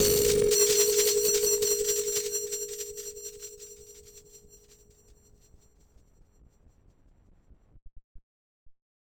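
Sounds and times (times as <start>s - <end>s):
battered synth: 0.0s - 4.8s.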